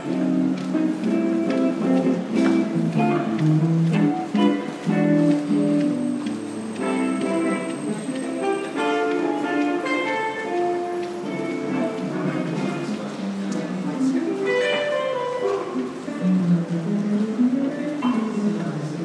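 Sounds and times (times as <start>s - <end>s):
busker playing: 0.0s - 19.0s
restaurant muzak: 0.0s - 19.0s.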